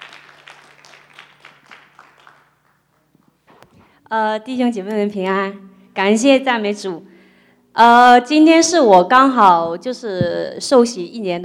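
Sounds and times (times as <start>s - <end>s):
audience applause: 0.0s - 2.8s
speech: 4.1s - 7.1s, 7.8s - 11.4s.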